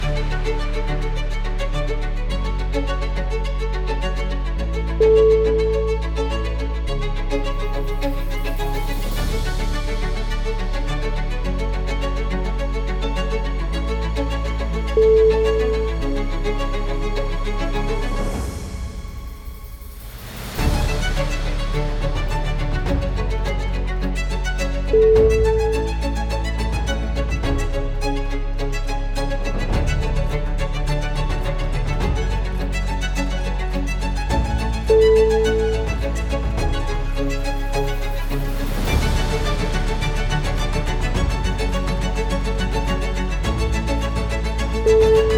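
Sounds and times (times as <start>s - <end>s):
classical music sequence: 0.0s - 45.3s.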